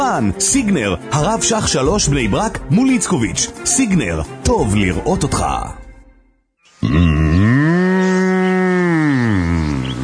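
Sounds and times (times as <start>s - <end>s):
speech: 0.2s - 5.8s
Angus cow mooing: 6.8s - 10.0s.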